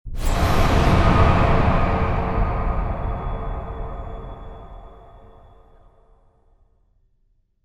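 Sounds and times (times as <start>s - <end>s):
scary music sting: 0.1s - 6.0s.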